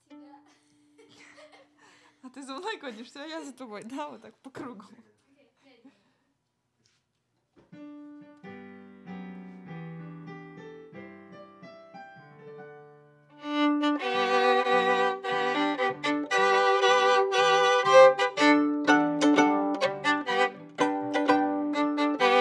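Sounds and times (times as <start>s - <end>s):
viola playing D: 13.4s - 22.3s.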